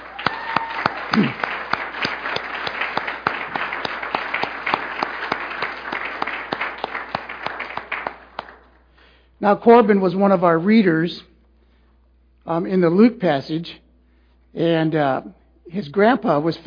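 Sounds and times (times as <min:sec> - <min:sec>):
audience round of applause: 0:00.0 - 0:08.8
speech: 0:09.4 - 0:11.3, 0:12.5 - 0:13.8, 0:14.5 - 0:16.6.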